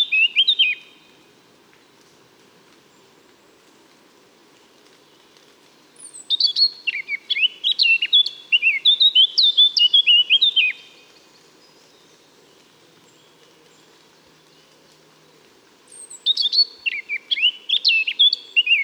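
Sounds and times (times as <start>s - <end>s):
Eurasian blackcap song: 0.0s - 1.0s, 6.0s - 14.9s, 15.9s - 18.8s.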